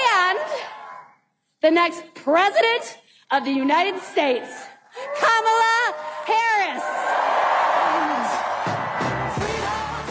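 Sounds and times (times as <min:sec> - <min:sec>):
speech: 0:01.6 - 0:05.6
whoops and yells: 0:03.9 - 0:09.4
huge crowd cheering loudly: 0:05.2 - 0:10.1.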